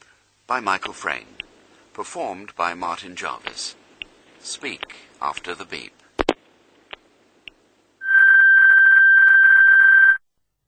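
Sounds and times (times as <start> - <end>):
speech: 0.5 - 1.4, 2.0 - 3.8, 4.4 - 6.0
telephone ringing: 8.0 - 10.2.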